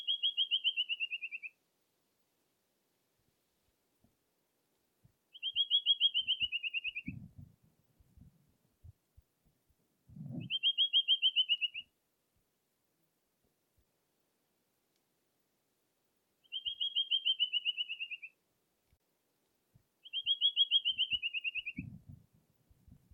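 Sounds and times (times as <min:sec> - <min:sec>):
rufous-winged antwren singing: 0:00.0 - 0:01.6, 0:05.3 - 0:07.2, 0:10.4 - 0:11.9, 0:16.4 - 0:18.4, 0:20.0 - 0:21.8.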